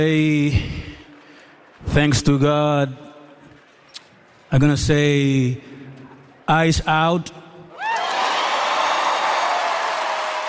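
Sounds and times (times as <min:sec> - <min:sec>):
speech: 0:00.0 - 0:00.8, 0:01.8 - 0:03.0, 0:04.5 - 0:05.7, 0:06.5 - 0:07.4
large crowd applauding, standing ovation: 0:07.8 - 0:10.4
whoops and cheers: 0:07.8 - 0:10.4.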